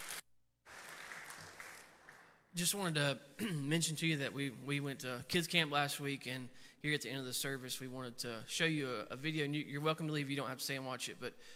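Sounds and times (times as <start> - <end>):
audience hand clapping: 0.0 - 2.5
speech: 2.6 - 11.5.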